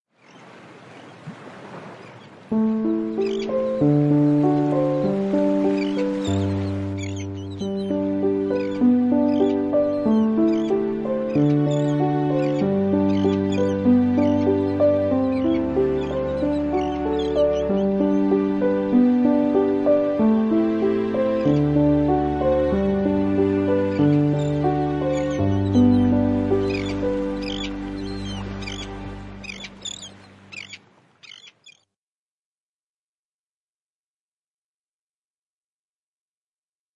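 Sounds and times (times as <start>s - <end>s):
violin accompaniment: 2.6s - 30.2s.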